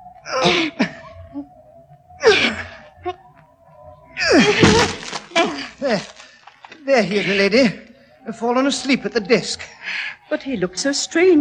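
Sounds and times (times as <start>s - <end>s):
speech: 0.3s - 1.5s, 5.9s - 6.1s, 6.9s - 11.4s
door being forced and broken down: 4.4s - 6.4s.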